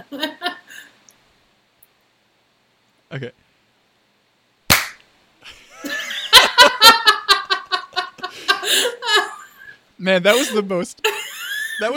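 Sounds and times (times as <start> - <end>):
speech: 0.0 - 0.3, 3.1 - 3.5, 10.0 - 11.2
group clapping together once: 4.7 - 5.0
several people laughing: 5.5 - 9.7, 10.3 - 11.9.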